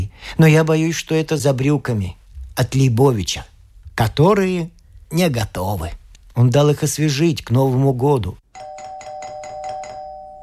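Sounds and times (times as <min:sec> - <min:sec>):
speech: 0:00.3 - 0:08.7
doorbell buzzing: 0:08.5 - 0:10.4.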